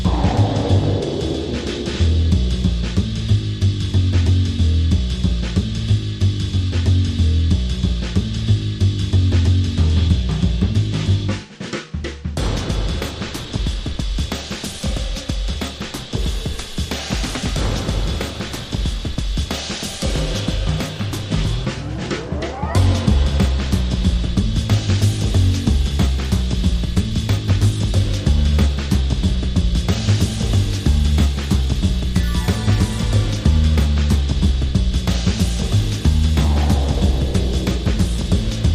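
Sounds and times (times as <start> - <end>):
sound effects: 0.0 - 3.0, 32.2 - 33.6
bass: 0.0 - 38.7
drums: 0.0 - 38.7.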